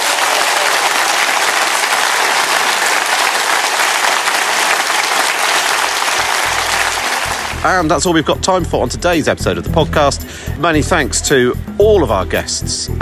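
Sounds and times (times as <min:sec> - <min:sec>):
audience applause: 0:00.0 - 0:07.8
speech: 0:07.6 - 0:13.0.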